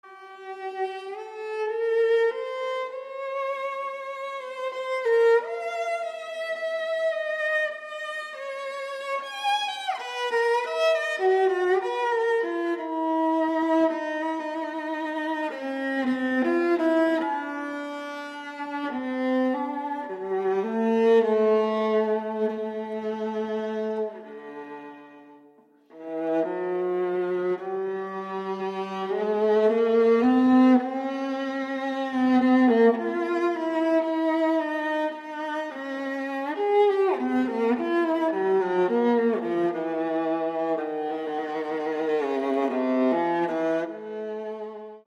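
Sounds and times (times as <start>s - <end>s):
unaccompanied viola: 0.0s - 45.0s.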